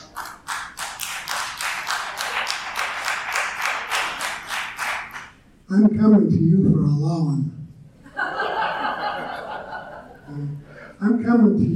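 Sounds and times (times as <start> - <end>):
scattered clapping from a small crowd: 0.0 - 5.4
speech: 5.7 - 7.6, 10.3 - 11.7
laughter: 8.0 - 10.4.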